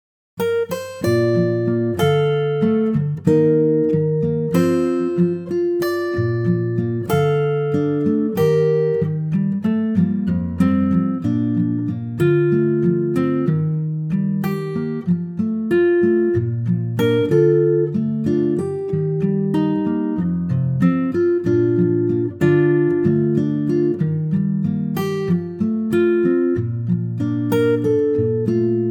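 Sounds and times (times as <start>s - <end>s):
acoustic guitar moving from B flat to C: 0.4s - 28.8s.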